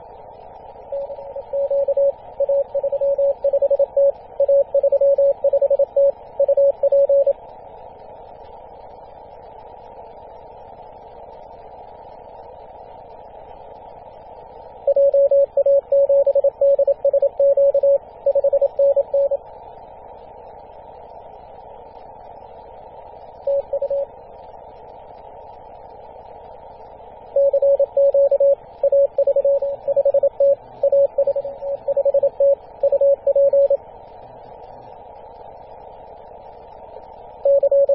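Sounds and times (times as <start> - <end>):
CW morse code on 24.898MHz: 1.0 - 7.3, 14.9 - 19.4, 23.5 - 24.1, 27.4 - 33.8, 37.5 - 37.9.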